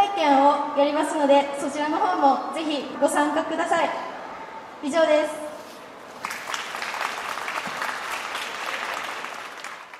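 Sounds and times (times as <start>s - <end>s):
speech: 0.8s - 4.2s, 4.8s - 5.4s
audience applause: 6.2s - 9.9s.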